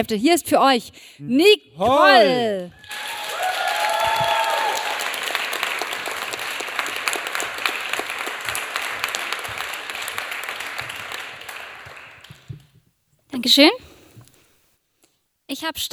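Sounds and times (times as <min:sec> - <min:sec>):
speech: 0:00.0 - 0:03.2, 0:13.4 - 0:13.8, 0:15.5 - 0:15.9
faint cheers: 0:02.7 - 0:07.0
audience applause: 0:02.8 - 0:12.5.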